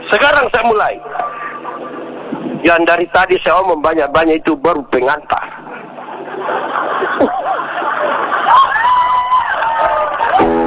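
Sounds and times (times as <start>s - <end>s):
speech: 0.1s - 1.2s, 2.6s - 5.4s
laughter: 0.4s - 2.6s, 5.4s - 10.6s
audience clapping: 6.7s - 10.6s.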